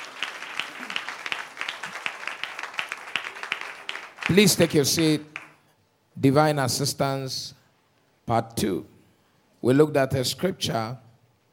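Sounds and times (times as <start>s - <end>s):
audience clapping hands in steady rhythmic beat: 0.0s - 5.7s
speech: 4.3s - 5.3s, 6.2s - 7.6s, 8.3s - 8.9s, 9.6s - 11.0s.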